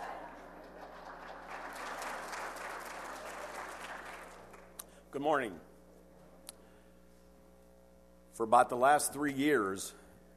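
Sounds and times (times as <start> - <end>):
audience applause: 0.0 - 4.8
speech: 5.1 - 5.7, 8.4 - 10.0.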